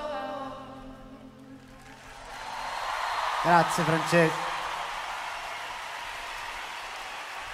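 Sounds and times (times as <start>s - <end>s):
audience applause: 1.6s - 7.5s
speech: 3.5s - 4.5s.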